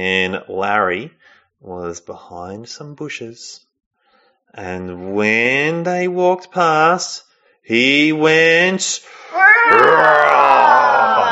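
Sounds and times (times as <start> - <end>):
speech: 0.0 - 3.7, 4.5 - 11.3
voice imitating a lion roar: 9.3 - 11.3.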